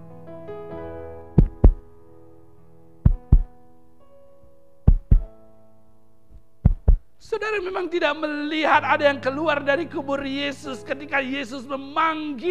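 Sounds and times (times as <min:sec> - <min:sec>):
heartbeat: 0:01.4 - 0:01.8, 0:03.1 - 0:03.5, 0:04.9 - 0:05.3, 0:06.7 - 0:07.1
speech: 0:07.3 - 0:12.4.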